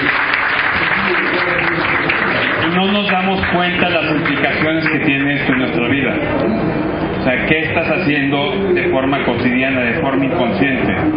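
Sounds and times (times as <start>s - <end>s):
audience applause: 0.0s - 5.8s
speech: 2.8s - 11.1s.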